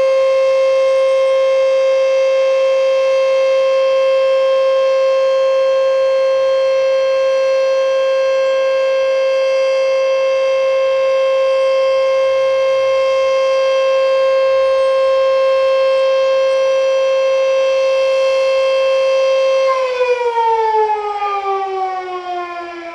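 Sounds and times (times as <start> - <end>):
war remembrance siren in Calliano: 0.0 - 22.9.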